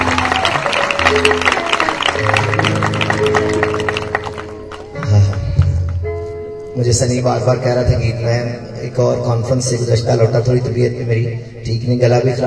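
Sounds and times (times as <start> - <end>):
loud clapping applause: 0.0 - 6.0
speech: 1.2 - 1.6, 6.8 - 12.4.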